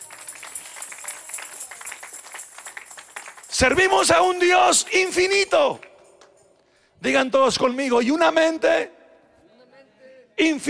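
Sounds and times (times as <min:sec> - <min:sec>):
audience applause: 0:00.0 - 0:03.9
speech: 0:03.5 - 0:05.9, 0:07.0 - 0:09.0, 0:10.4 - 0:10.6.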